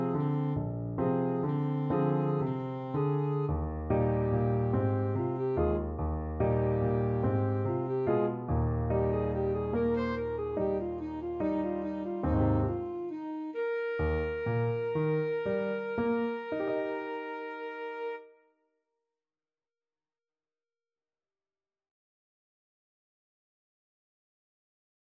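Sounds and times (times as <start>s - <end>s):
alto saxophone duet: 0.0s - 18.3s.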